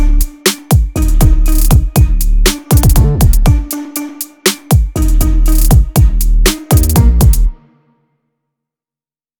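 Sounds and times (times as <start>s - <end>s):
808 drum machine in beat: 0.0s - 7.5s.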